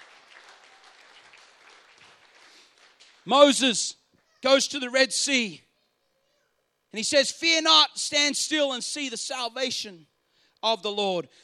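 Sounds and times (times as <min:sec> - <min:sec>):
audience clapping hands: 0:00.0 - 0:03.3
speech: 0:03.2 - 0:05.6, 0:06.9 - 0:11.4.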